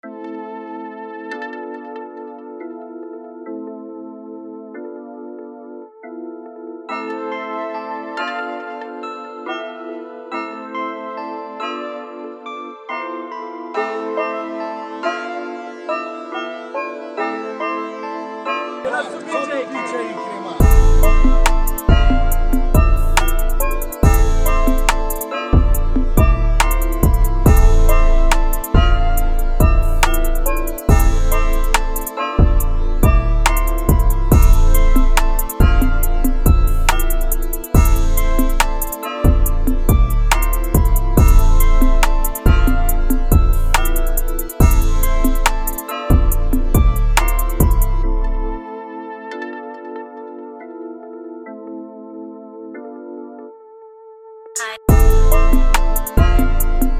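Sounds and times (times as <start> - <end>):
hip hop type beat: 6.9 - 49.6, 54.6 - 56.9.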